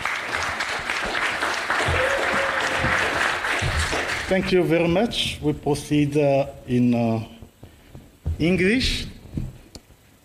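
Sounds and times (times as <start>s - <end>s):
audience applause: 0.0s - 4.7s
speech: 4.3s - 7.4s, 8.4s - 9.1s.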